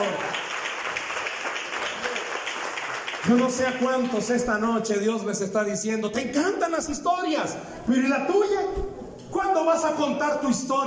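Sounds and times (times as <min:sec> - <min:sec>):
audience applauding: 0:00.0 - 0:04.4
speech: 0:03.2 - 0:10.8.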